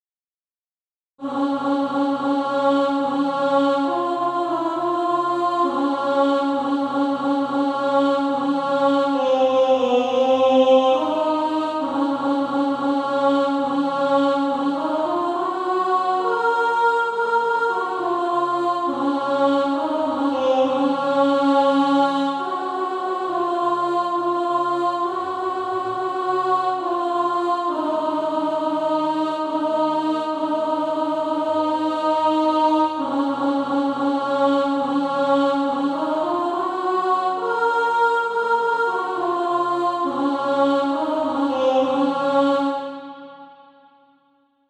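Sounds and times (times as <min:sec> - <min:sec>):
alto voice singing: 0:01.2 - 0:43.8.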